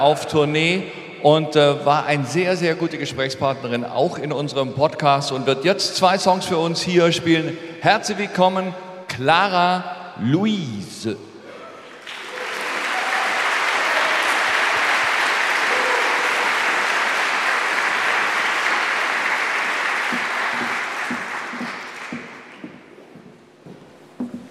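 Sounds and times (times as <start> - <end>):
speech: 0.0 - 11.3
audience applause: 11.8 - 22.6.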